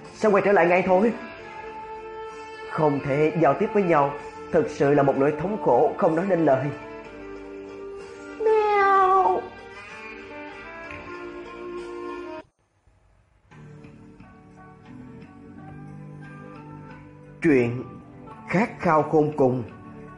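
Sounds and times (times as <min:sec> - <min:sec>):
steady musical background: 0:00.0 - 0:12.5, 0:13.5 - 0:20.1
speech: 0:00.2 - 0:01.3, 0:02.8 - 0:06.9, 0:17.4 - 0:17.9, 0:18.5 - 0:19.8
cat meowing: 0:08.4 - 0:09.6.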